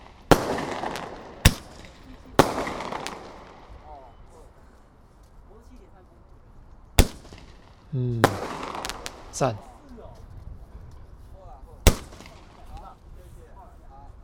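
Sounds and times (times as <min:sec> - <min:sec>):
fireworks bursting: 0:00.0 - 0:04.6, 0:07.0 - 0:10.0, 0:11.8 - 0:13.0
speech: 0:08.0 - 0:08.2, 0:09.4 - 0:09.7.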